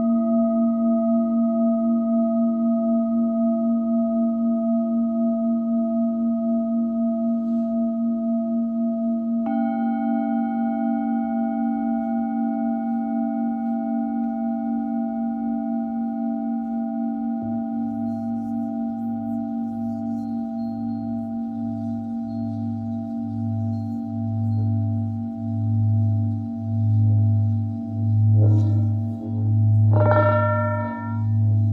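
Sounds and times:
Tibetan singing bowl ringing: 0.0 - 31.7
low pulsing wobble: 14.9 - 31.7.

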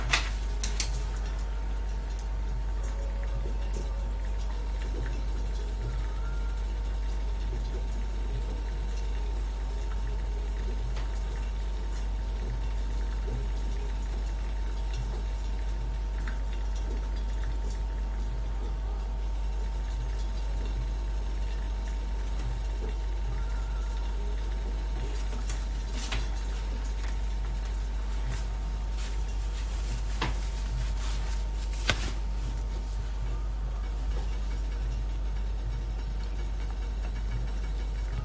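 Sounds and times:
mocha blend coffee beans crackling: 0.0 - 1.4, 25.2 - 34.6
hum: 0.0 - 38.2
mocha blend coffee roasting machine rumble: 0.0 - 38.2.

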